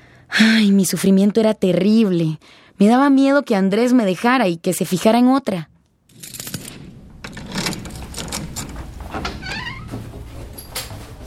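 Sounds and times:
speech: 0.4s - 6.3s
clicks knocks and rattles: 6.1s - 11.2s
door opening as someone arrives home from work: 6.2s - 11.2s.

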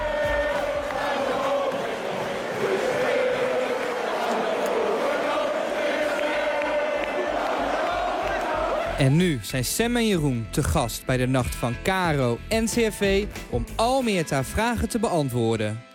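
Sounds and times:
stadium crowd shouting: 0.0s - 9.0s
speech: 9.0s - 15.9s.

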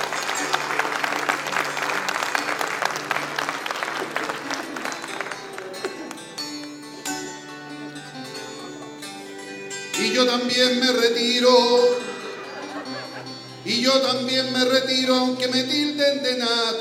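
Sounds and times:
laughter: 0.0s - 6.3s, 8.2s - 9.3s, 12.0s - 14.2s
audience applause after a sung folk poetry verse: 0.0s - 7.0s
crowd voices: 0.0s - 15.6s
speech: 10.2s - 12.0s, 13.7s - 16.7s.

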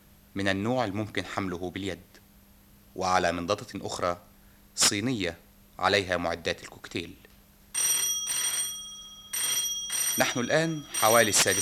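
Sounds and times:
speech: 0.4s - 2.2s, 3.0s - 7.2s, 10.2s - 11.6s
telephone ringing in a furnished room: 7.8s - 11.6s.

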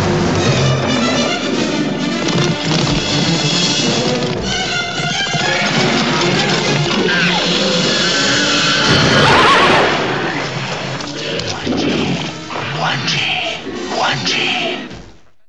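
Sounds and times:
loud crashing burst: 0.0s - 11.0s
horse whinnying: 0.0s - 15.4s
lion calling: 0.0s - 15.4s
monkey calling: 0.0s - 15.4s
rumbling noise: 0.0s - 15.4s.

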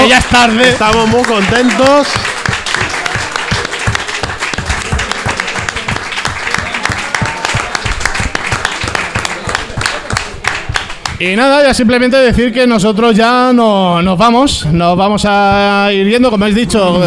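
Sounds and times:
audience applause at a Comic Con in a bookshop: 0.0s - 11.2s
speech: 0.1s - 2.4s, 11.2s - 17.0s.

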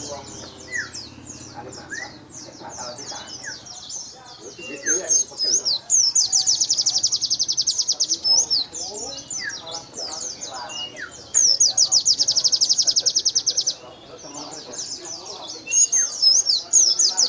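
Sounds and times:
white-eye singing energetically with high rapid trills and jumbled chirping: 0.0s - 17.2s.

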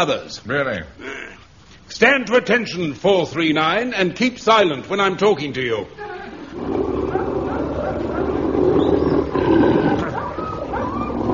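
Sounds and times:
speech: 0.0s - 6.8s
dog growling: 6.5s - 11.3s.

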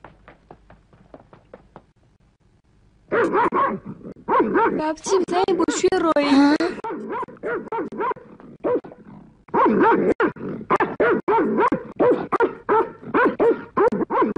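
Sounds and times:
cartoon dog in a Kurdish animated series barking and yipping: 3.1s - 5.0s, 6.8s - 14.3s
speech: 3.2s - 6.6s, 9.7s - 10.2s.

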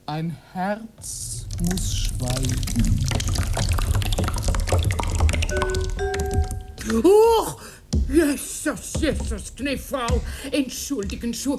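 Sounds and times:
speech: 0.1s - 4.5s, 6.9s - 11.5s
sauce spilling onto a tablecloth: 1.0s - 7.0s
thin ringing tone: 5.5s - 6.8s.

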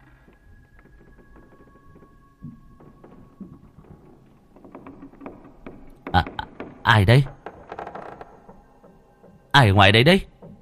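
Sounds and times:
shaken bamboo lattice door creaking and rattling: 0.0s - 10.6s
speech: 6.9s - 7.4s, 9.6s - 10.3s.

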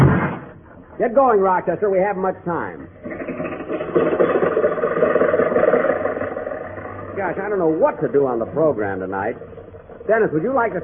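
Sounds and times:
speech: 1.0s - 3.1s, 7.2s - 10.8s
car engine running: 3.0s - 10.8s.

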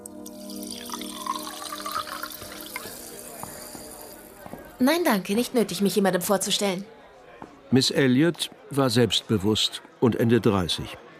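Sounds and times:
water pouring into a vase of flowers: 0.0s - 4.8s
speech: 4.8s - 7.0s, 7.7s - 11.0s.

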